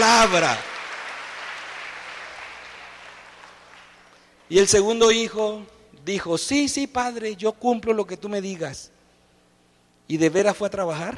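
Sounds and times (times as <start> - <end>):
speech: 0.0 - 0.7, 4.5 - 8.9, 10.1 - 11.1
audience applause: 0.0 - 4.4.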